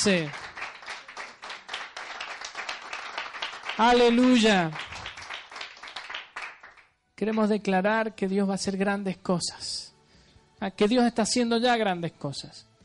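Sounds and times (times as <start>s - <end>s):
speech: 0.0s - 0.5s, 3.8s - 4.8s, 7.2s - 9.9s, 10.6s - 12.7s
audience clapping: 0.0s - 7.5s.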